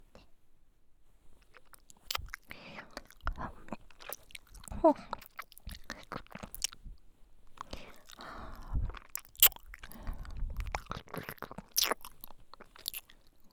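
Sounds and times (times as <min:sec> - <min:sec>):
ear licking in left ear: 0:01.6 - 0:06.8, 0:07.6 - 0:13.1.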